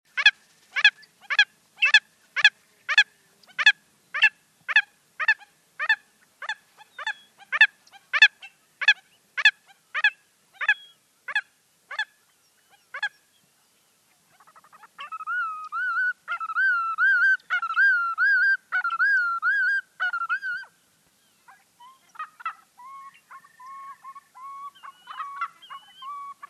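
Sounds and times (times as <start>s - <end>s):
willet calling at Emiquon, Illinois: 0.2s - 20.7s, 21.3s - 26.4s.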